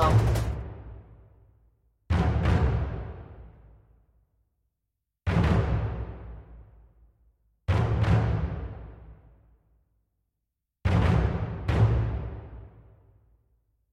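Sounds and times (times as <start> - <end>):
drums: 0.0 - 1.2, 2.1 - 3.8, 5.2 - 6.8, 7.6 - 9.4, 10.8 - 13.0.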